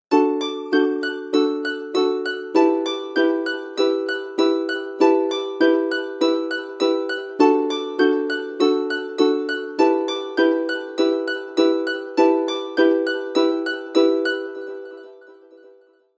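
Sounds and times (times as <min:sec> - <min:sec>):
charming Apple ringtone: 0:00.1 - 0:15.9.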